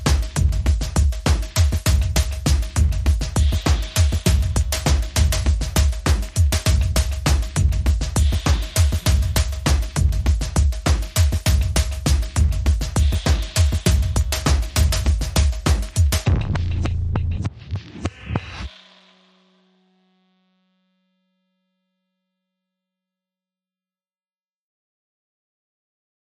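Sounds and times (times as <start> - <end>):
drums: 0.0 - 19.4.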